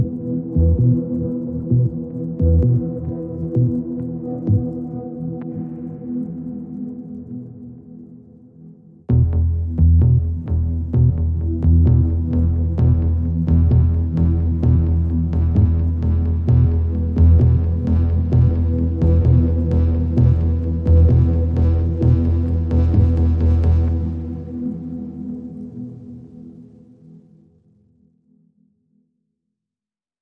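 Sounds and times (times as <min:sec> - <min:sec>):
bass: 0:00.0 - 0:05.5, 0:09.1 - 0:25.2.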